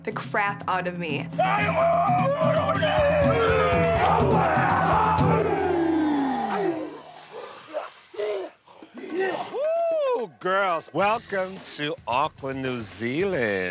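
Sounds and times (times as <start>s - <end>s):
speech: 0.0s - 5.5s, 10.4s - 13.6s
group of voices shouting and chanting at a Maori cultural performance in Auckland, New Zealand: 1.3s - 10.3s
long cry gliding downward in pitch: 1.5s - 7.1s.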